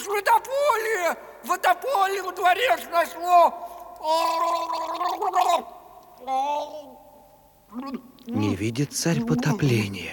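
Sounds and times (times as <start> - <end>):
speech: 1.1 - 7.0, 7.7 - 10.1
person choking and gurgling on water: 4.2 - 5.6.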